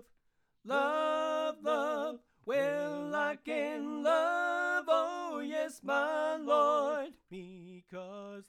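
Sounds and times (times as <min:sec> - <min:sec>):
tenor voice: 0:00.7 - 0:07.0.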